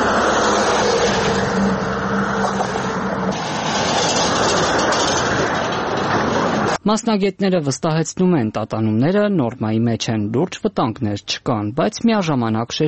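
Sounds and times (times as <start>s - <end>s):
heavy vehicle crossing a worn 640-metre road bridge in Abovyan, Kotayk: 0.0s - 6.8s
speech: 6.9s - 12.8s.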